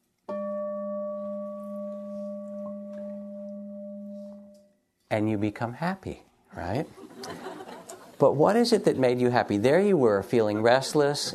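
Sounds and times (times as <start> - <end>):
meditation bell ringing: 0.3 - 4.9
speech: 5.1 - 7.5, 8.2 - 11.3
laughter: 6.9 - 9.2.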